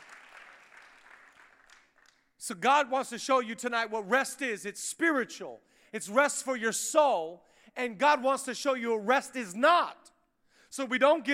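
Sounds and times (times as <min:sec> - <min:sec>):
audience clapping: 0:00.0 - 0:02.4
speech: 0:02.4 - 0:10.1, 0:10.7 - 0:11.3.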